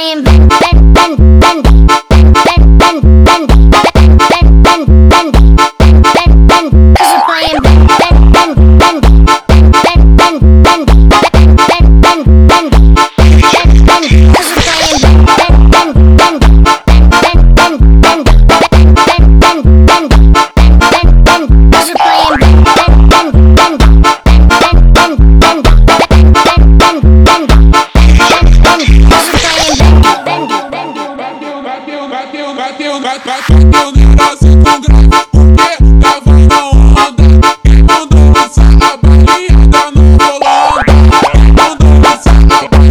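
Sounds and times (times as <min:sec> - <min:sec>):
bendy funk music: 0:00.3 - 0:31.5, 0:33.5 - 0:42.8.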